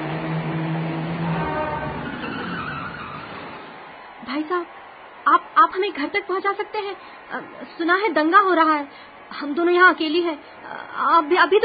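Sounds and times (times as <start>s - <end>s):
car engine and tire noise passing: 0.0s - 4.2s
speech: 4.3s - 11.6s.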